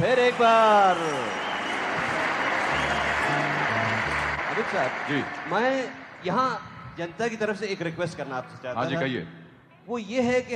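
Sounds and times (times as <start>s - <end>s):
speech: 0.0s - 1.4s, 4.6s - 10.5s
crowd applause welcoming a celebrity onto a stage: 0.0s - 6.4s.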